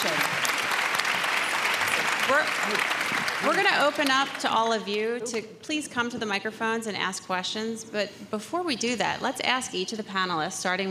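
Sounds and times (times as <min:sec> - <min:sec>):
audience applauding a panel: 0:00.0 - 0:05.2
speech: 0:02.3 - 0:10.9.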